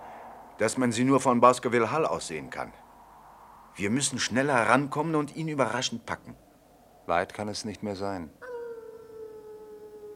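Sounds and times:
speech: 0.6 - 2.8, 3.8 - 6.4, 7.1 - 8.4
dog howling on a dark moor: 8.4 - 10.1.

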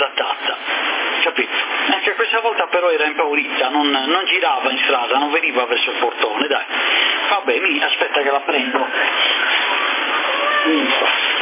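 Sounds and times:
steady hiss: 0.0 - 11.4
speech: 2.3 - 9.4, 10.6 - 11.3
female cat meowing: 9.7 - 11.3.

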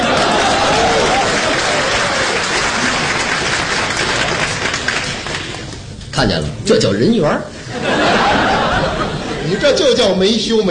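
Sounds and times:
laughter: 0.0 - 3.3, 7.5 - 10.1
audience applause: 0.0 - 5.9
speech: 6.2 - 8.1, 9.6 - 10.6.

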